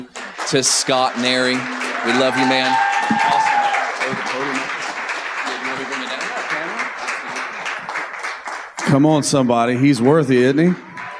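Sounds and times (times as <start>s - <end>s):
speech: 0.0s - 4.6s, 8.9s - 10.9s
crowd clapping: 0.0s - 11.1s.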